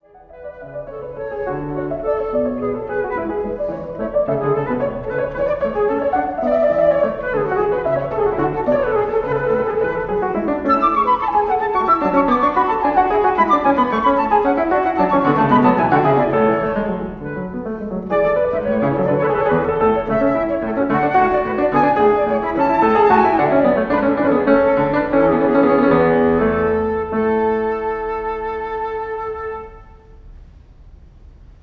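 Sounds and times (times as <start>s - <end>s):
baroque sonata in A major: 0.0s - 31.6s.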